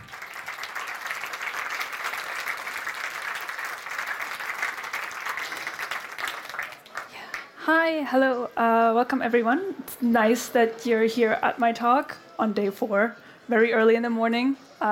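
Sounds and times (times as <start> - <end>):
audience applause: 0.0 - 7.6
speech: 7.7 - 14.9.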